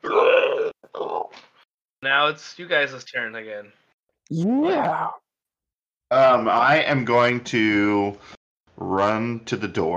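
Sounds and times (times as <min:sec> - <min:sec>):
person imitating a dragon roar: 0:00.0 - 0:01.3, 0:04.3 - 0:05.2
speech: 0:02.0 - 0:05.2, 0:06.1 - 0:09.9.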